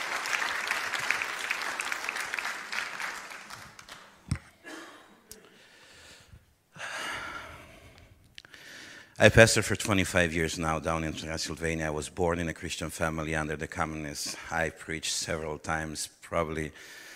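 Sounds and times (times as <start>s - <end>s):
audience applauding for the worship team: 0.0s - 4.2s
speech: 9.2s - 17.0s.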